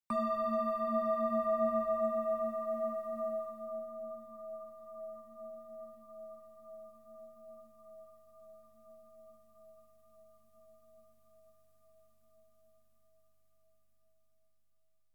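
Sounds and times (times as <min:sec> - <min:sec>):
gong: 0:00.1 - 0:05.6.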